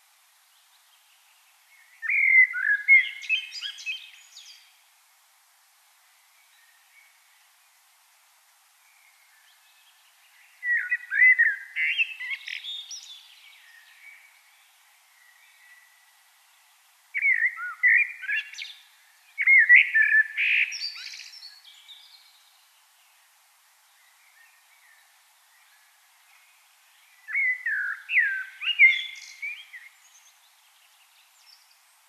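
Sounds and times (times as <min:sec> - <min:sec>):
common blackbird song: 0:01.7 - 0:04.7, 0:08.9 - 0:16.1, 0:17.2 - 0:22.5, 0:23.9 - 0:31.8.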